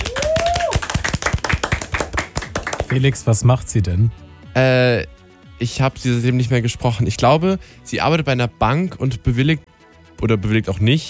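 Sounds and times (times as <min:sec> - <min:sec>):
applause: 0:00.0 - 0:03.3
speech: 0:02.9 - 0:11.0.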